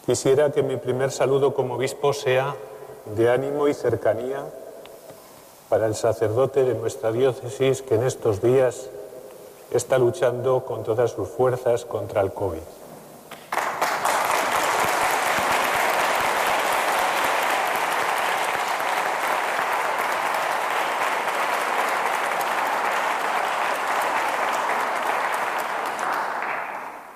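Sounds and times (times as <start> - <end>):
speech: 0.0 - 4.6, 5.7 - 9.0, 9.7 - 12.8
audience applause in a church: 13.4 - 27.1.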